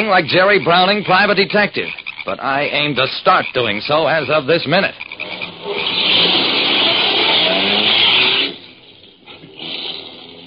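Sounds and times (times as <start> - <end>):
speech: 0.0 - 6.2
car engine driving away: 5.6 - 10.4.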